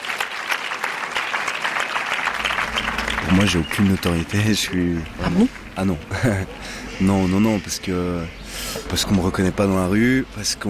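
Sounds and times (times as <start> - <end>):
audience applause: 0.0 - 6.3
speech: 3.3 - 10.6.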